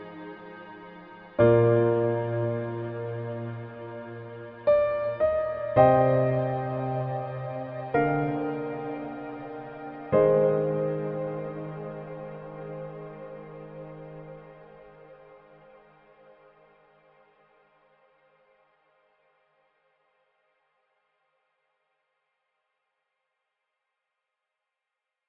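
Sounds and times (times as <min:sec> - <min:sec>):
piano mix: 0:00.0 - 0:15.7.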